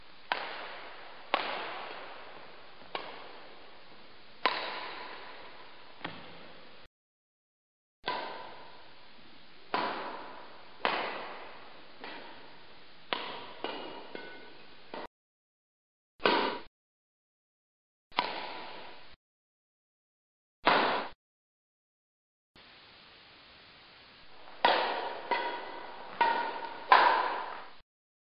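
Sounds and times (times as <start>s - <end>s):
badminton racket hitting shuttlecock: 0.2s - 6.4s, 8.0s - 8.8s, 9.7s - 15.1s, 16.2s - 16.7s, 18.2s - 18.9s, 24.6s - 27.8s.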